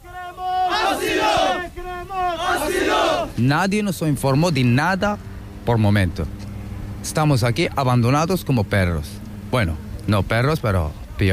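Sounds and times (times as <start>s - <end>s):
crowd of migrants chanting in unison for asylum: 0.0s - 3.4s
speech: 3.4s - 6.4s, 7.0s - 11.3s.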